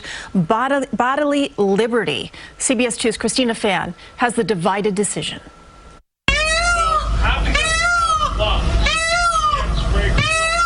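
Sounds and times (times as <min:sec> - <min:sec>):
speech: 0:00.3 - 0:05.6
low rumble: 0:06.3 - 0:10.2
Asian elephant squealing: 0:06.3 - 0:10.6.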